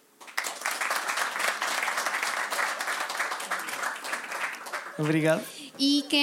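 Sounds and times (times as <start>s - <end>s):
audience applause: 0.2s - 5.5s
speech: 5.0s - 6.2s.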